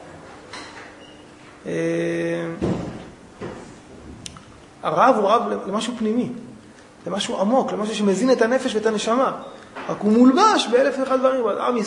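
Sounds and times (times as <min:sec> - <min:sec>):
speech: 0:01.6 - 0:02.7, 0:04.8 - 0:11.8
door closing thud: 0:02.6 - 0:04.2.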